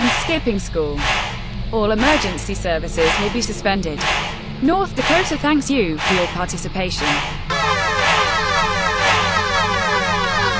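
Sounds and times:
speech: 0:00.3 - 0:07.4
siren: 0:07.1 - 0:10.5.

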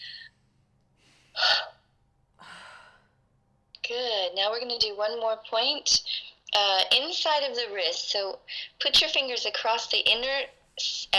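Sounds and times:
deep breath intake during a tapping exercise: 0:00.0 - 0:01.7
speech: 0:04.0 - 0:11.1.

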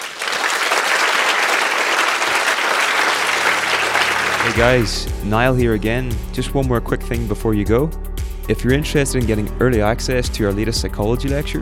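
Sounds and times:
audience applause: 0:00.0 - 0:05.0
speech: 0:04.4 - 0:11.5.

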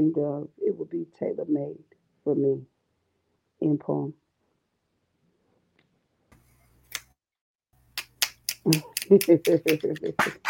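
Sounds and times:
speech: 0:00.0 - 0:02.7, 0:03.6 - 0:04.2, 0:08.7 - 0:10.4
audience finger snapping after a poem: 0:07.9 - 0:10.4.

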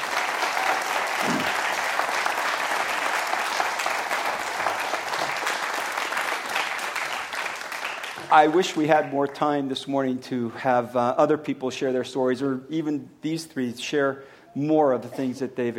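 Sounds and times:
audience round of applause: 0:00.0 - 0:08.8
speech: 0:08.3 - 0:15.7.

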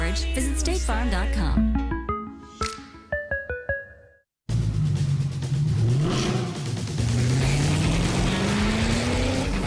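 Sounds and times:
speech: 0:00.1 - 0:01.8
bright plucked tonal notes: 0:01.6 - 0:04.2
sports car engine revving and accelerating: 0:04.5 - 0:09.6.

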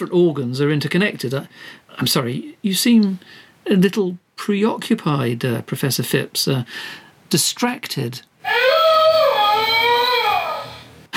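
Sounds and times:
speech: 0:00.0 - 0:08.8
wolf howling: 0:08.5 - 0:10.8.

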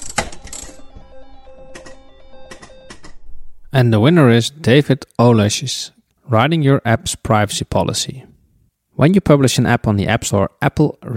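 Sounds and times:
slot machine sound effect jingle: 0:00.0 - 0:03.0
speech: 0:03.8 - 0:08.3, 0:09.0 - 0:11.1.

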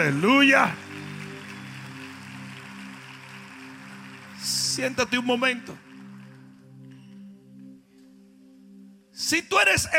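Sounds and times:
speech: 0:00.0 - 0:00.9, 0:04.4 - 0:05.8, 0:09.2 - 0:09.9
crowd applause: 0:00.0 - 0:07.2.

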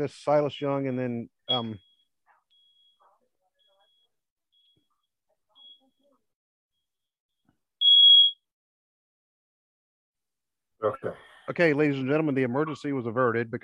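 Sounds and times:
speech: 0:00.0 - 0:01.9, 0:10.8 - 0:13.6
smoke detector beep: 0:01.5 - 0:06.2, 0:07.8 - 0:08.5.

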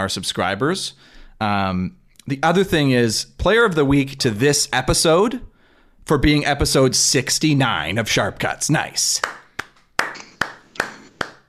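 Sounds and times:
speech: 0:00.0 - 0:05.5, 0:06.1 - 0:09.4
handclaps: 0:09.2 - 0:11.4.

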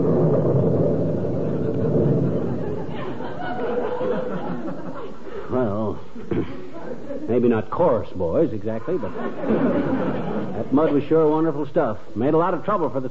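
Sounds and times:
rolling thunder rumble: 0:00.0 - 0:05.0
people chattering and chuckling: 0:01.4 - 0:08.0, 0:08.6 - 0:11.2
speech: 0:07.4 - 0:13.0.

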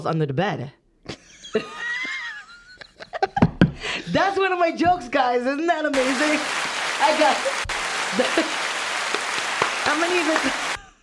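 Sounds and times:
speech: 0:00.0 - 0:00.8, 0:01.5 - 0:01.8, 0:04.1 - 0:07.5, 0:08.1 - 0:08.6, 0:09.8 - 0:10.6
laughter: 0:01.1 - 0:03.8, 0:06.0 - 0:10.8
person clapping for themselves: 0:06.0 - 0:10.8.

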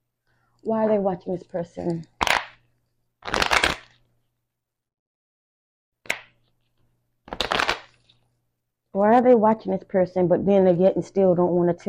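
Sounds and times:
speech: 0:00.6 - 0:02.1, 0:09.0 - 0:11.8
playing cards being handled and shuffled: 0:03.2 - 0:04.0, 0:06.1 - 0:08.2.

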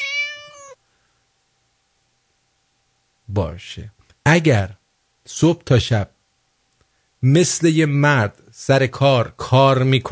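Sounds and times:
cat meowing: 0:00.0 - 0:00.8
faint low hum: 0:00.0 - 0:10.1
speech: 0:03.3 - 0:06.2, 0:07.2 - 0:10.1.

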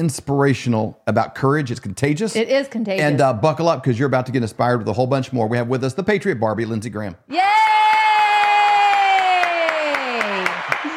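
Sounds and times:
speech: 0:00.0 - 0:07.9
sustained cheer or whoop: 0:07.3 - 0:10.9
audience applause: 0:07.8 - 0:10.9.

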